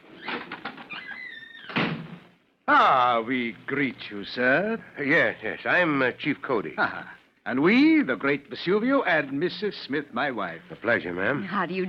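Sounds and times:
door creaking open: 0.0s - 2.4s
speech: 2.7s - 11.8s.

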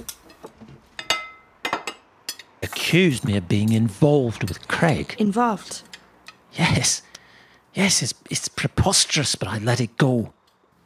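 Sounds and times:
dishes and glassware clinking as they are gathered up: 0.0s - 2.6s
speech: 2.7s - 5.9s, 6.6s - 7.1s, 7.7s - 10.4s.

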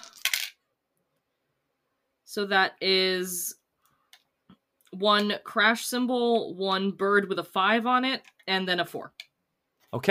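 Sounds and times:
dice clattering across a hard tabletop: 0.0s - 0.6s
speech: 2.3s - 3.6s, 4.9s - 9.3s, 9.9s - 10.1s.

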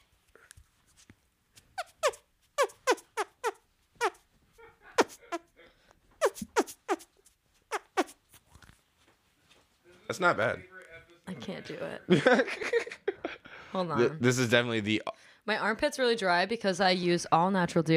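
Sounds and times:
squelchy hand farts from squeezing air between palms: 1.8s - 4.2s, 5.0s - 5.5s, 6.2s - 7.1s, 7.7s - 8.2s
laughter: 4.6s - 5.5s, 12.1s - 13.7s
speech: 10.1s - 10.7s, 11.4s - 12.9s, 13.8s - 17.9s.

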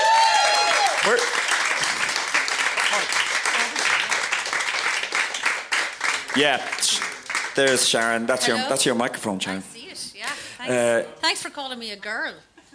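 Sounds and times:
audience applause: 0.0s - 8.8s
speech: 1.0s - 1.4s, 6.4s - 9.9s, 10.6s - 12.5s.

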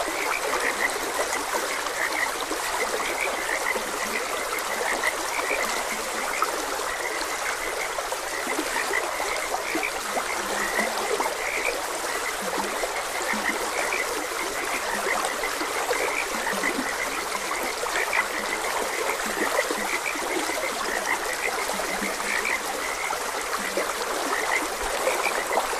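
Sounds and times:
frogs croaking: 0.0s - 25.7s
trickling gurgling stream water: 0.0s - 25.7s.

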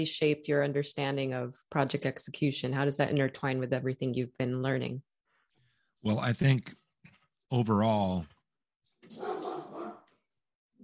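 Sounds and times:
speech: 0.0s - 5.1s, 6.0s - 6.8s, 7.5s - 8.3s
dog barking in the background: 9.1s - 10.1s.

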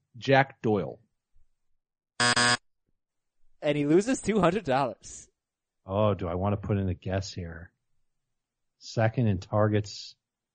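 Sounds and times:
speech: 0.2s - 1.0s, 2.2s - 2.6s, 3.6s - 7.7s, 8.8s - 10.2s
game show buzzer: 2.2s - 2.6s.

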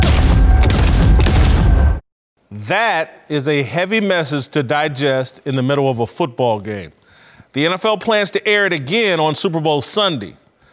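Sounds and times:
gunshots: 0.0s - 2.0s
speech: 2.7s - 10.4s.

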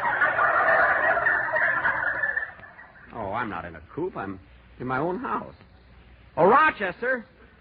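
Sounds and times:
turkey gobbling inside a coop: 0.0s - 3.2s
speech: 3.5s - 5.7s, 6.4s - 7.4s.

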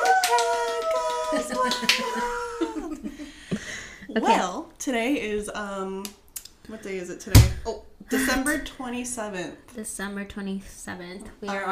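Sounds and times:
people clapping and snapping: 0.0s - 2.3s
voices whooping cheers: 0.0s - 2.9s
laughter: 0.0s - 4.4s
speech: 1.3s - 11.7s.

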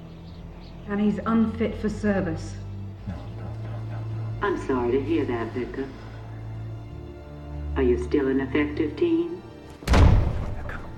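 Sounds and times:
speech: 0.9s - 3.2s, 4.4s - 6.0s, 7.8s - 10.0s
laughter: 3.0s - 5.9s
door slamming shut: 9.8s - 10.9s.

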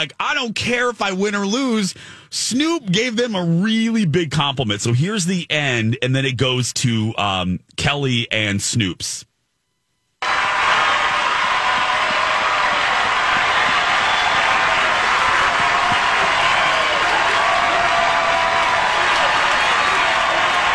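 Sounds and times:
speech: 0.0s - 9.3s
large crowd cheering and applauding: 10.2s - 20.7s.

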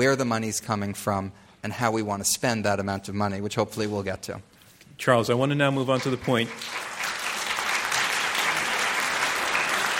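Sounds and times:
speech: 0.0s - 6.9s
audience applause: 6.0s - 9.9s.

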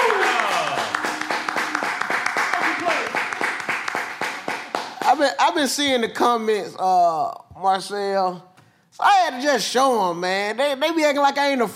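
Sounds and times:
voices and whoops: 0.0s - 3.1s
audience applause: 0.0s - 5.2s
speech: 5.2s - 11.7s.

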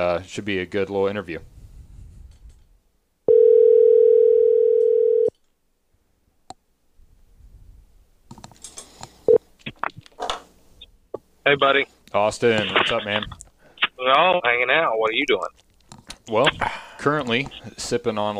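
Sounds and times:
speech: 0.0s - 1.5s, 11.5s - 13.4s, 14.0s - 15.6s, 16.3s - 18.3s
phone dialing beeps and clicks: 3.3s - 5.3s
telephone tone: 3.3s - 5.3s.

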